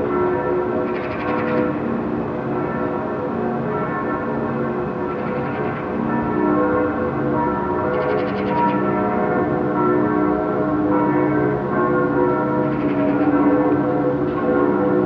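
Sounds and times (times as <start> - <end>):
distant bells in Berlin: 0.0 - 15.0.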